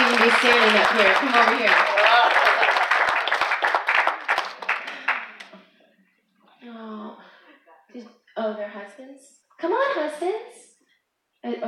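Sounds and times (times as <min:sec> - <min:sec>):
audience clapping: 0:00.0 - 0:05.7
speech: 0:00.2 - 0:02.2.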